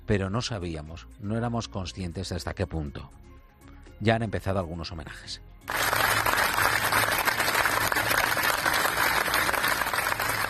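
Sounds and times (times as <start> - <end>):
speech: 0.1 - 3.3, 4.0 - 6.0
hospital staff and patients applauding: 5.7 - 10.4.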